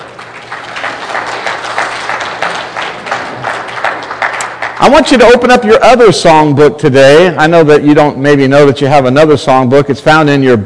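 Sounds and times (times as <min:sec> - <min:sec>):
audience clapping after birthday song: 0:00.0 - 0:05.6
speech: 0:04.8 - 0:10.6.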